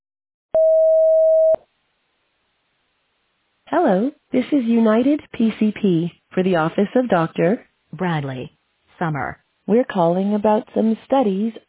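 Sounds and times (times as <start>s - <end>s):
voicemail recording tone beep: 0.6s - 1.6s
speech: 3.7s - 11.6s.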